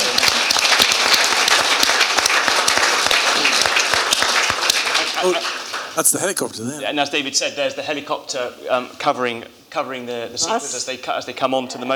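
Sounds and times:
audience applause for a person who recovered after an accident: 0.2 - 6.8
speech: 5.2 - 11.9.

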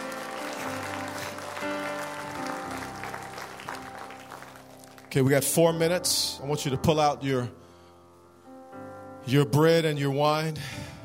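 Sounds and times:
audience hand clapping: 0.0 - 5.6
speech: 5.1 - 7.6, 9.3 - 11.0.

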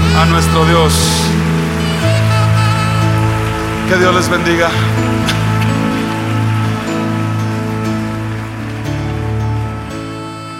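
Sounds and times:
audience applause: 0.0 - 10.5
speech: 0.2 - 1.4, 3.9 - 5.4.

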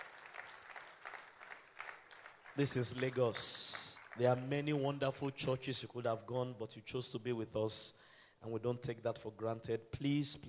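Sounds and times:
audience applause: 0.0 - 4.5
speech: 2.6 - 10.4.

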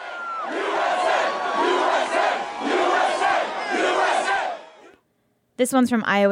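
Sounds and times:
crowd outside the White House chanting and cheering over bin Laden's death: 0.0 - 5.0
speech: 5.6 - 6.3.

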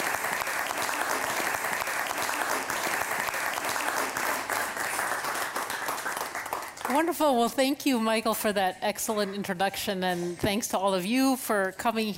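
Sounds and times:
audience applause: 0.0 - 7.0
speech: 7.0 - 12.1.

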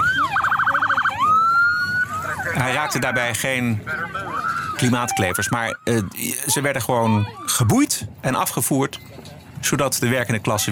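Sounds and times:
police car siren driving through a protest blockade: 0.0 - 3.1, 4.2 - 6.1
speech: 2.7 - 10.7.

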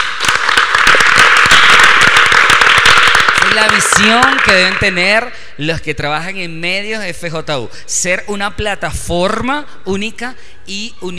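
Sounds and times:
crowd applauding: 0.0 - 5.0
speech: 3.6 - 11.1.

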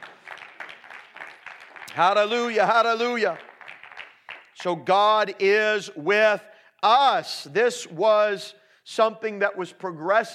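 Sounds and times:
crowd clapping hands in a steady rhythmic beat: 0.0 - 5.4
speech: 2.0 - 3.5, 4.6 - 10.3.

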